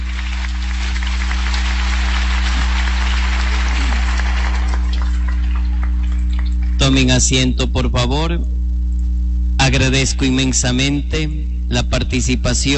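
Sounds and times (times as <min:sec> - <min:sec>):
audience applause: 0:00.0 - 0:06.9
speech: 0:07.0 - 0:08.6, 0:09.7 - 0:12.7.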